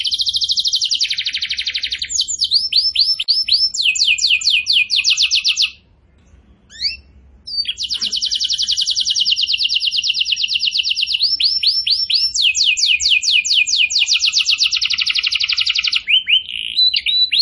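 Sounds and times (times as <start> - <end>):
bird singing: 0.0 - 17.4.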